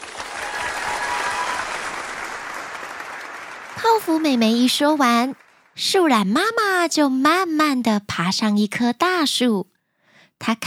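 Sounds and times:
crowd applauding: 0:00.0 - 0:05.8
speech: 0:03.8 - 0:09.7, 0:10.4 - 0:10.6.

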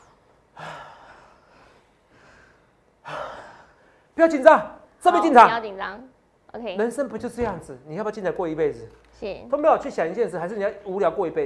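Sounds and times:
deep breath: 0:00.0 - 0:04.1
speech: 0:04.2 - 0:11.4.

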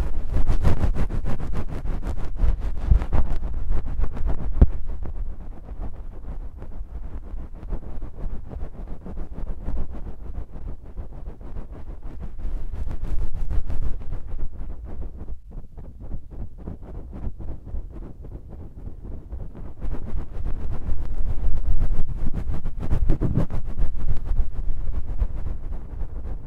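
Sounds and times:
fine scratches crackling: 0:00.0 - 0:05.6, 0:19.6 - 0:26.4
ear massage rub on the left side: 0:00.0 - 0:26.4.

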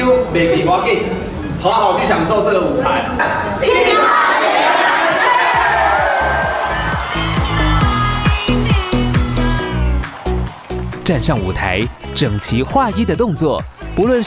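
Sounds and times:
speech: 0:00.4 - 0:04.7, 0:11.1 - 0:14.2
stadium audience cheering and applauding: 0:04.0 - 0:14.2.

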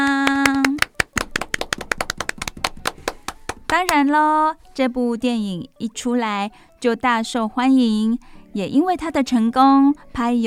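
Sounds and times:
clapping applause: 0:00.0 - 0:04.0
speech: 0:03.7 - 0:10.4.

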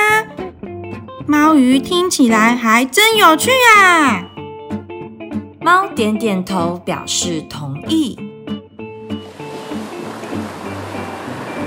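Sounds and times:
speech: 0:01.3 - 0:04.3, 0:05.6 - 0:08.3
ocean waves: 0:09.1 - 0:11.6.

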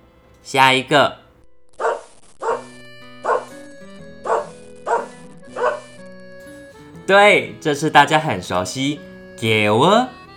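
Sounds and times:
speech: 0:00.4 - 0:01.2, 0:07.1 - 0:10.3
dog barking: 0:01.8 - 0:03.5, 0:04.2 - 0:05.9.

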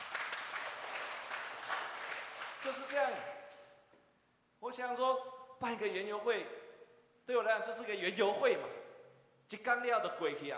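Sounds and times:
audience applause: 0:00.0 - 0:03.2
speech: 0:02.6 - 0:03.4, 0:04.6 - 0:06.6, 0:07.3 - 0:08.7, 0:09.5 - 0:10.5.

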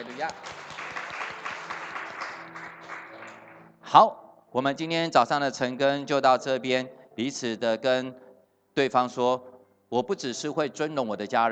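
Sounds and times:
speech: 0:00.0 - 0:00.7, 0:03.9 - 0:08.2, 0:08.8 - 0:11.5
audience applause: 0:00.0 - 0:03.7.

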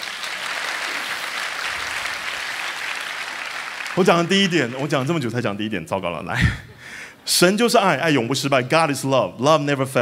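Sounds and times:
audience clapping: 0:00.0 - 0:05.5
speech: 0:04.0 - 0:10.0.

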